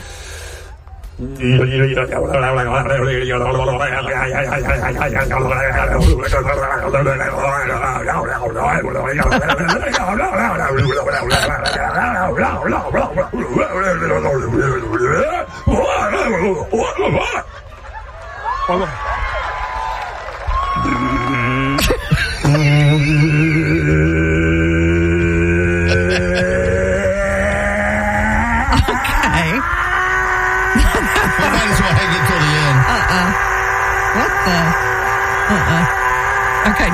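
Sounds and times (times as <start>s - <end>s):
speech: 1.2s - 17.6s, 18.7s - 19.1s, 22.5s - 24.2s
laughter: 1.4s - 19.6s, 20.6s - 36.9s
human voice imitating a Bigfoot in a winning calling-contest call: 4.1s - 15.2s, 20.8s - 36.9s.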